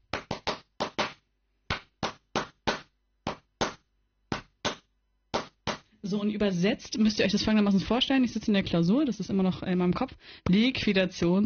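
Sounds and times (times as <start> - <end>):
hand clapping: 0.0 - 5.9
speech: 6.0 - 11.4.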